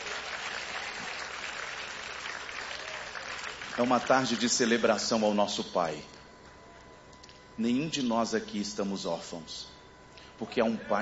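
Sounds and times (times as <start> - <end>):
audience applauding: 0.0 - 4.8
speech: 3.8 - 6.2, 7.6 - 9.8, 10.4 - 11.0.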